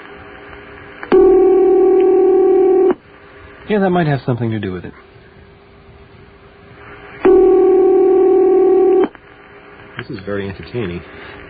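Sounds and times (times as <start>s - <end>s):
telephone ringing: 1.1s - 3.0s, 7.2s - 9.1s
speech: 3.7s - 5.2s, 10.1s - 11.4s.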